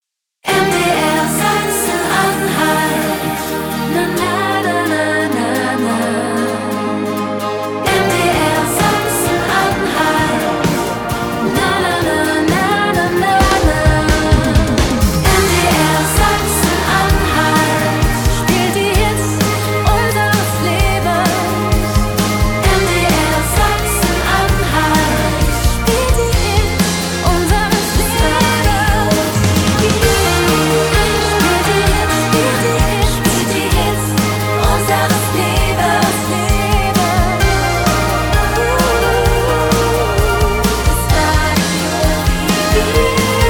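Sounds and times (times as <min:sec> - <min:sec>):
1980s pop rock theme music: 0:00.5 - 0:43.4.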